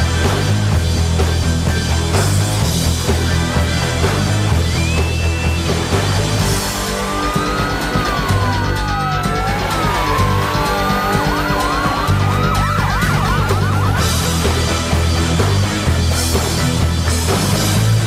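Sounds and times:
loud dense music track with a heavy steady bass beat: 0.0 - 18.0
laughter: 6.6 - 17.2
police siren wailing and yelping in a music track: 6.8 - 14.9.

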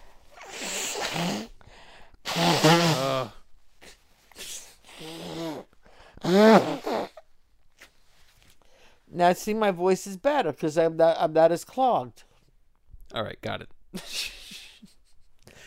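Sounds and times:
forceful nose blows: 0.0 - 7.9
speech: 9.2 - 12.3, 13.1 - 14.3.

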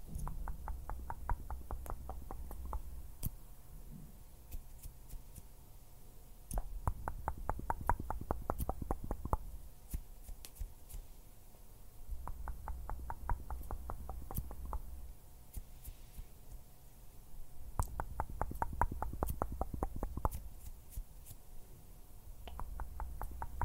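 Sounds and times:
fingers fluttering in soft tapping: 0.2 - 3.3, 6.5 - 10.7, 12.2 - 15.0, 17.8 - 20.4, 22.4 - 23.6.

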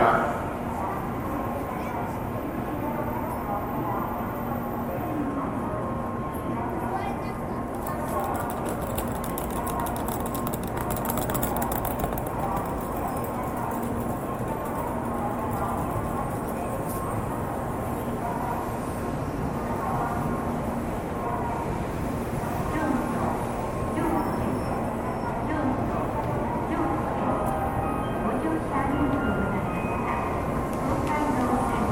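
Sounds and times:
low rumble of trains: 0.0 - 31.9
murmur of people talking in a busy Japanese train station: 0.0 - 31.9
bright crackles and clatter: 7.7 - 15.0.

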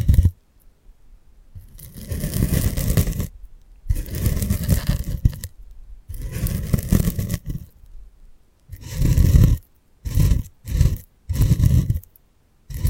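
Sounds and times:
ear picking scraping and rubbing with various props: 0.0 - 0.4, 1.6 - 5.5, 6.1 - 7.8, 8.7 - 12.1, 12.7 - 12.8.

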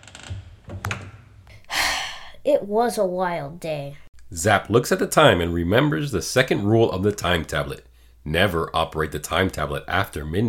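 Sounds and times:
door being shut: 0.0 - 1.5
speech: 2.4 - 10.4.

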